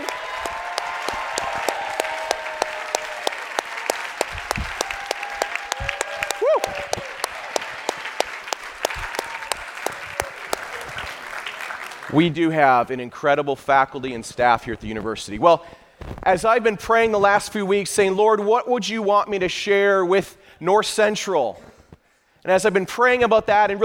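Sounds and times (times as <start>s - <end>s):
audience applause and cheering for faculty and staff: 0.0s - 12.4s
speech: 12.2s - 21.7s, 22.4s - 23.8s.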